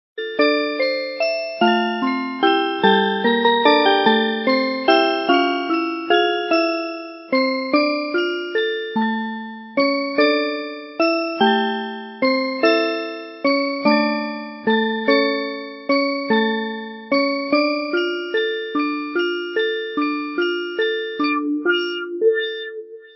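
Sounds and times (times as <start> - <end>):
music box: 0.2 - 23.1.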